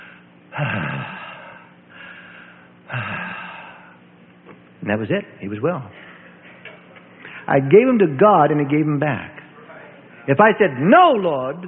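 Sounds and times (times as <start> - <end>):
man imitating a sick child breathing easier with snorting breaths: 0.0 - 4.0
speech: 4.8 - 6.1, 7.5 - 9.4, 10.3 - 11.6.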